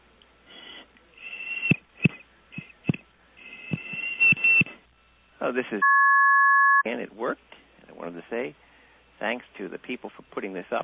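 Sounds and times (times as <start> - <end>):
whistle mimicking a phone-line tone: 1.2 - 2.7, 3.4 - 4.8
speech: 5.4 - 5.9, 6.8 - 10.8.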